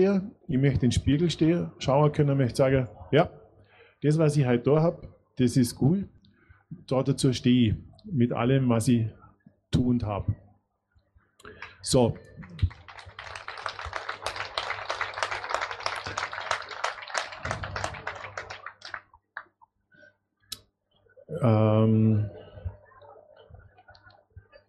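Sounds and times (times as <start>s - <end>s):
speech: 0.0s - 3.4s, 4.0s - 10.4s, 11.4s - 12.8s, 21.4s - 22.4s
audience clapping: 11.5s - 19.6s.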